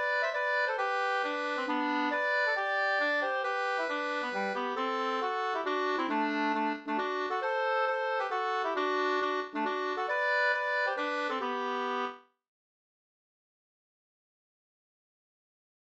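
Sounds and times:
hambo polska dance tune: 0.0s - 12.0s.

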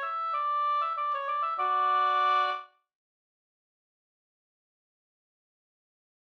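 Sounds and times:
wedding march music: 0.1s - 2.6s.

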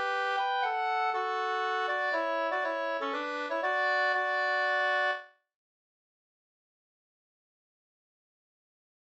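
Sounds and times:
polska folk dance tune in D major: 0.0s - 5.2s.

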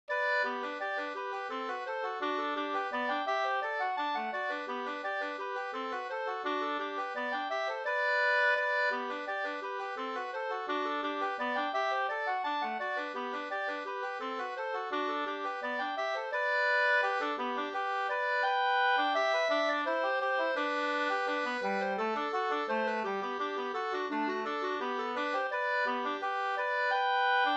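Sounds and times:
waltz music: 0.1s - 27.5s.

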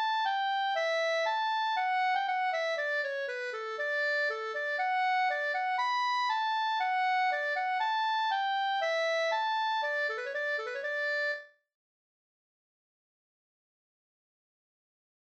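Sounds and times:
polka music: 0.0s - 11.4s.

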